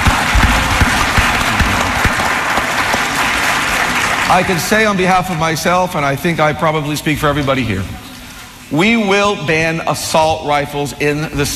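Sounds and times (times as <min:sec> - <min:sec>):
crowd applauding: 0:00.0 - 0:05.5
speech: 0:04.3 - 0:08.1, 0:08.7 - 0:11.5.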